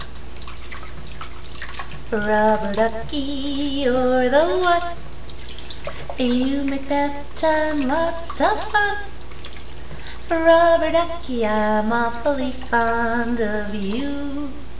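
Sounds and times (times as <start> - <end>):
person singing: 2.1 - 5.0, 6.2 - 9.1, 10.3 - 14.7.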